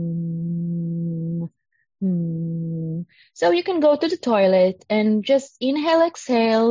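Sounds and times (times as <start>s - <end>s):
person humming a low tone as a relaxation exercise: 0.0s - 3.1s
speech: 3.3s - 6.6s.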